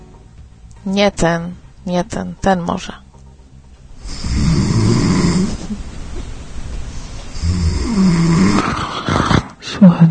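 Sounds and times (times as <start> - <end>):
speech: 0.8 - 3.0, 9.8 - 10.0
recording of a person snoring: 4.0 - 5.8, 7.3 - 9.8.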